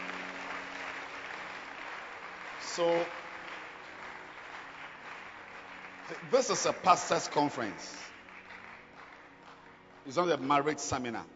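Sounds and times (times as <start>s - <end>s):
audience hand clapping applause: 0.0s - 10.5s
speech: 2.8s - 3.2s, 6.1s - 8.1s, 10.1s - 11.3s.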